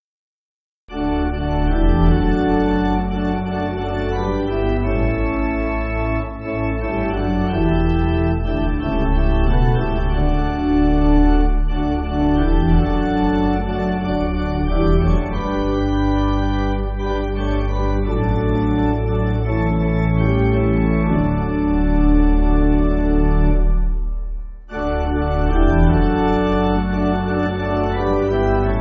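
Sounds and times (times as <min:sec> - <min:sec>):
pipe organ church music: 0:00.9 - 0:28.7.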